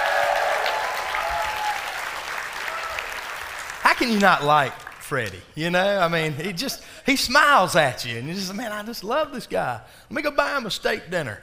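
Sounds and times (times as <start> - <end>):
audience applause: 0.0 - 5.2
speech: 4.0 - 11.4.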